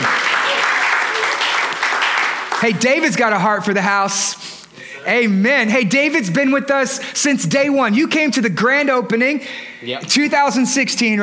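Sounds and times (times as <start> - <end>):
crowd applauding: 0.0 - 3.2
speech: 2.6 - 11.2.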